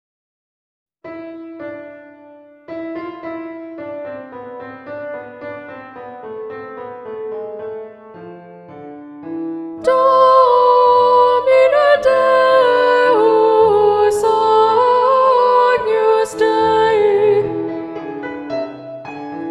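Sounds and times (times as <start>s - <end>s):
soprano and alto voices singing with alto predominant: 9.8s - 18.8s.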